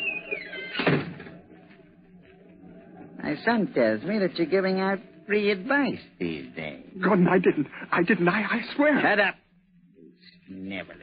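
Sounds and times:
door shutting with a dull thud in a radio mystery drama: 0.7s - 1.3s
speech: 3.3s - 9.4s.

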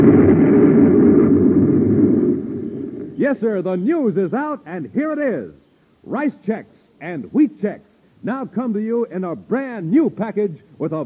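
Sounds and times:
deep rumbling explosion sound effect: 0.0s - 3.2s
speech: 3.3s - 11.0s.

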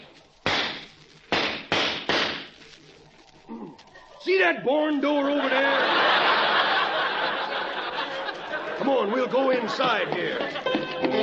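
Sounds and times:
pistol shots at a pine cone: 0.4s - 2.6s
speech: 3.7s - 6.4s, 8.9s - 11.2s
laughter: 5.0s - 11.2s.

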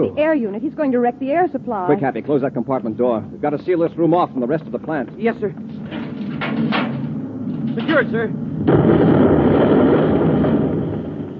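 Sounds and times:
speech: 0.0s - 5.7s, 7.8s - 10.0s
rocket blast explosion hitting the plant: 8.6s - 11.3s.

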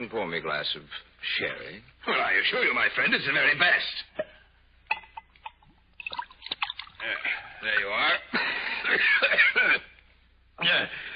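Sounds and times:
speech: 0.0s - 4.2s, 7.0s - 9.9s, 10.6s - 11.1s
person coughing from a cold: 8.8s - 10.0s.

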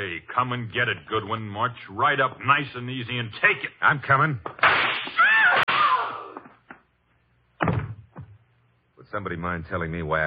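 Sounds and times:
speech: 0.2s - 4.8s, 9.2s - 10.2s
gunshot sound effect in a radio drama: 4.6s - 6.1s.

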